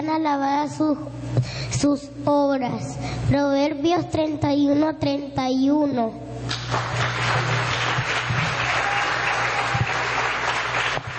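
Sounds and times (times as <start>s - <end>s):
speech: 0.0s - 7.7s
audience applause: 6.6s - 11.1s.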